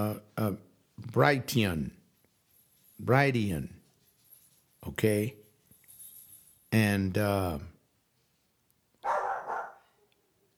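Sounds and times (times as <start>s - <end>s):
speech: 0.0s - 2.0s, 3.0s - 3.8s, 4.8s - 5.4s, 6.7s - 7.7s
protective dog barking at someone outside the front: 9.0s - 10.1s.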